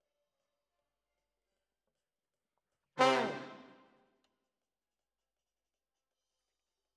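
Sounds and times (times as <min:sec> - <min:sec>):
trombones: 0:03.0 - 0:03.8.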